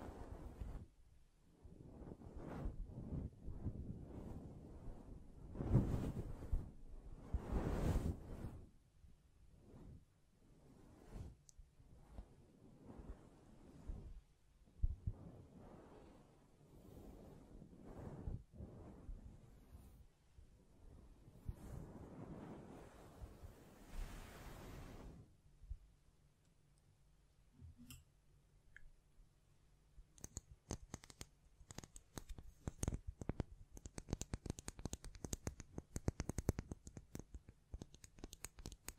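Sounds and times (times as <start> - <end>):
hands rubbing and brushing a microphone: 0.0 - 0.9, 1.8 - 8.7, 10.7 - 14.2, 14.9 - 20.1, 21.4 - 25.2, 30.2 - 38.9
fast crisp scratching and tapping clicks: 30.1 - 38.9.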